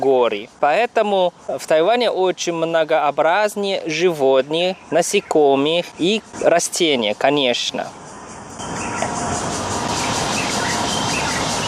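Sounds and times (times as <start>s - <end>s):
speech: 0.0s - 8.0s
cicada chirping: 0.0s - 11.6s.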